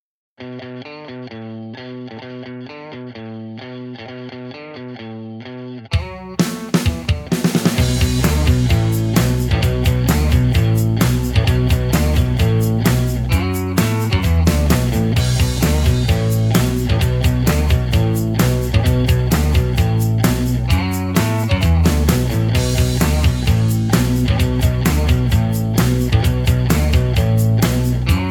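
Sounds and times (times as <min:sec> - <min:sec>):
heavy rock music: 0:05.9 - 0:28.3.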